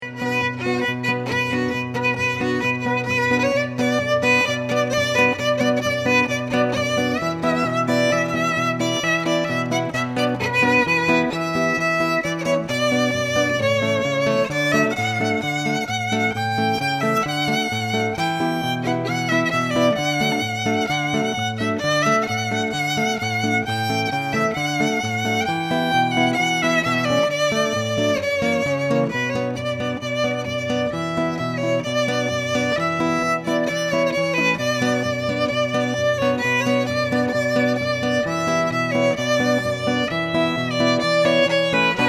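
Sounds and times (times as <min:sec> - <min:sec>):
violin medley: 0:00.0 - 0:42.0.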